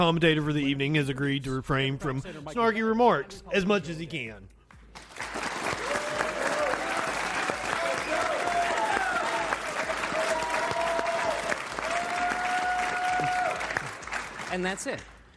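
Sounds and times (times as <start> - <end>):
speech: 0.0 - 4.6, 14.5 - 15.1
audience applauding: 4.9 - 15.3
people cheering: 5.3 - 14.4.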